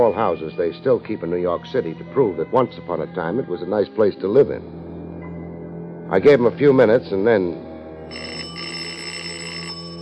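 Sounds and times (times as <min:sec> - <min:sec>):
speech: 0:00.0 - 0:04.8, 0:06.1 - 0:08.4
doorbell ringing: 0:08.1 - 0:10.0.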